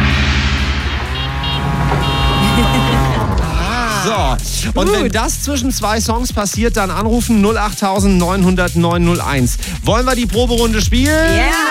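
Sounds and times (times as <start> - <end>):
tuk-tuk auto rickshaw engine droning: 0.2 - 3.5
laughter: 2.3 - 5.2
speech: 4.1 - 11.6.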